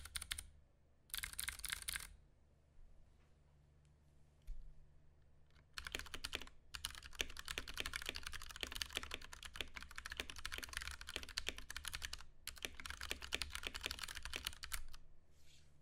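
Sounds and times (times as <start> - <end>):
Ducky One 2 Mini mechanical keyboard typing: 0.0 - 0.5, 1.1 - 2.1, 5.6 - 15.0.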